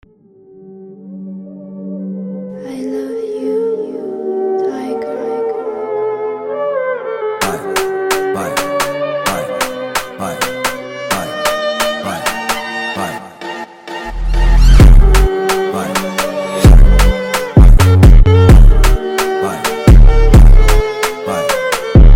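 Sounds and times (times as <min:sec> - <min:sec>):
Indian phonk music: 0:07.4 - 0:22.1.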